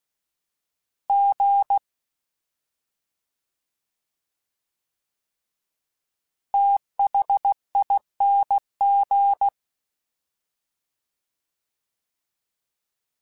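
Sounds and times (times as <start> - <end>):
fast CW Morse code groups: 1.1 - 1.8, 6.5 - 9.5.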